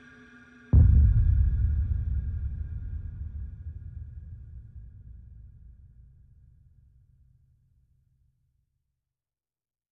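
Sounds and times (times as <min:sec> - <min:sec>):
percussion: 0:00.0 - 0:07.4.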